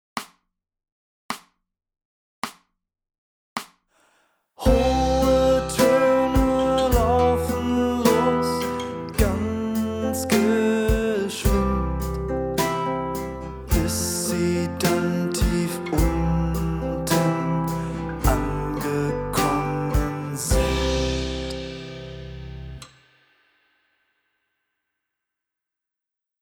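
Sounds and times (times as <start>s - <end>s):
high tones: 4.7s - 22.8s.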